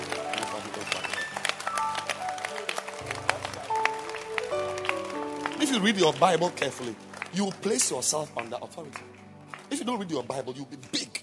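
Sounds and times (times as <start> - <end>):
audience clapping: 0.0 - 11.2
speech: 5.7 - 11.2.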